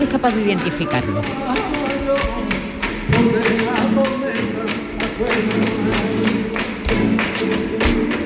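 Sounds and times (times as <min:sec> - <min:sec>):
flamenco hand clapping: 0:00.0 - 0:08.2
speech: 0:00.1 - 0:01.8.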